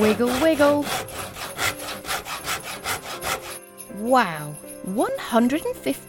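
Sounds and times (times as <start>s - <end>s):
speech: 0.0s - 1.2s, 4.1s - 6.0s
hand saw cutting through wood: 0.0s - 3.7s.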